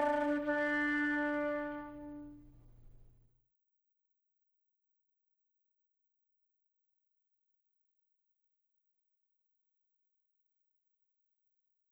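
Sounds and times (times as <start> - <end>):
flute: 0.0 - 2.4.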